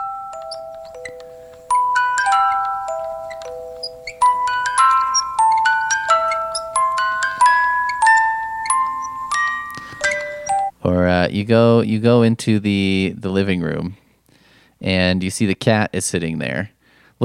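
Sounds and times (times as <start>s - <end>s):
music box melody: 0.0s - 10.8s
speech: 11.3s - 14.0s, 14.8s - 17.2s.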